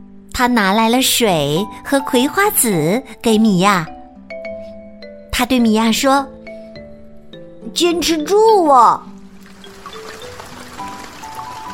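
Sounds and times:
speech: 0.4s - 4.0s, 5.4s - 6.4s, 7.6s - 9.1s
rain falling: 9.3s - 11.7s.

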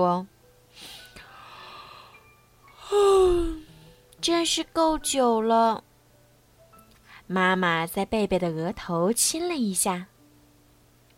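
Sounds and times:
speech: 0.0s - 0.9s, 4.2s - 5.9s, 7.3s - 10.1s
person yawning: 2.8s - 3.8s.

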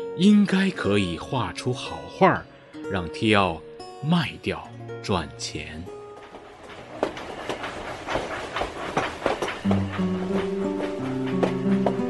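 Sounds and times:
speech: 0.2s - 6.0s
train running on rails: 5.2s - 12.0s.

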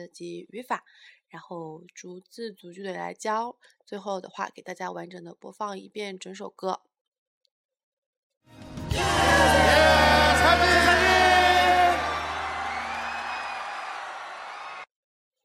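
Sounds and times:
speech: 0.0s - 6.9s
live music recording: 8.6s - 13.6s
audience cheering: 8.9s - 14.9s.

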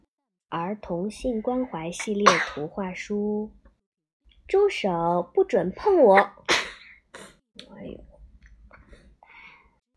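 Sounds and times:
speech: 0.5s - 3.6s, 4.5s - 6.5s
person sneezing: 2.2s - 2.6s, 6.5s - 7.4s.

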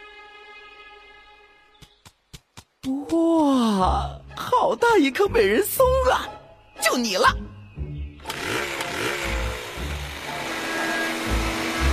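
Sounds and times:
speech: 2.8s - 7.5s
small chainsaw engine running: 8.2s - 11.9s.

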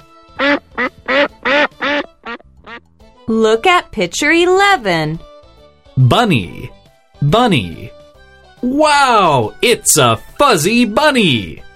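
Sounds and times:
duck quacking: 0.4s - 2.8s
speech: 3.3s - 5.3s, 6.0s - 7.9s, 8.6s - 11.6s.

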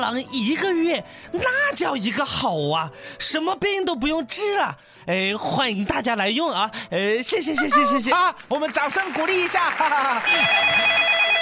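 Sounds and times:
speech: 0.0s - 11.4s
telephone ringing: 10.5s - 11.4s.

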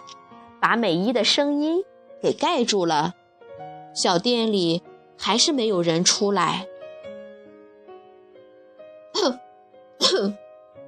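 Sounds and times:
speech: 0.6s - 3.2s, 4.0s - 6.7s
person coughing: 10.0s - 10.4s.

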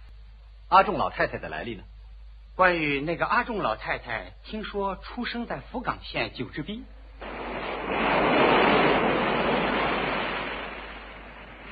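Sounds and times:
speech: 0.7s - 1.9s, 2.6s - 7.0s, 7.8s - 8.5s
waves crashing against rocks: 7.2s - 11.7s.

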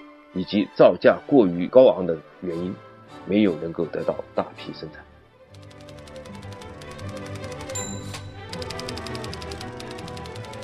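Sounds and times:
speech: 0.4s - 5.1s
typewriter typing: 5.5s - 10.6s.

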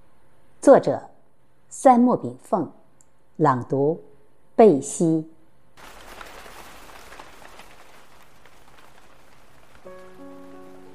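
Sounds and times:
speech: 0.7s - 1.1s, 1.7s - 2.8s, 3.4s - 5.9s
heavy rain falling outside window: 5.8s - 10.9s.

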